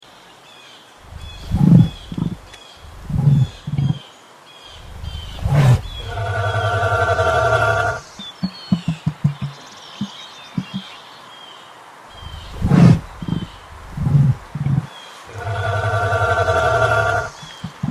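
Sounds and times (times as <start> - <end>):
dilophosaur call: 1.1 - 4.0, 4.8 - 8.2, 12.2 - 17.8.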